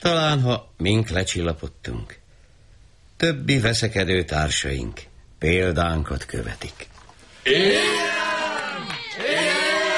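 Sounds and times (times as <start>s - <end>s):
speech: 0.0s - 2.2s, 3.2s - 8.2s
crowd shouting joyfully: 7.5s - 9.9s.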